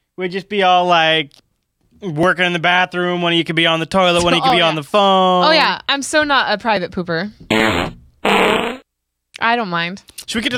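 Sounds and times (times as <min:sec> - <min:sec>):
speech: 0:00.2 - 0:01.4, 0:02.0 - 0:08.0, 0:09.4 - 0:10.5
laughter: 0:04.2 - 0:04.8
loud buzzy fart sounds: 0:07.5 - 0:08.9.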